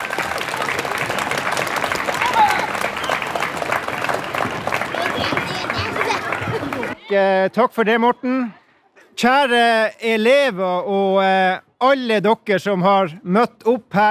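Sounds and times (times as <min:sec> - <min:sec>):
warm applause: 0:00.0 - 0:07.0
speech: 0:07.1 - 0:08.6, 0:09.2 - 0:14.1.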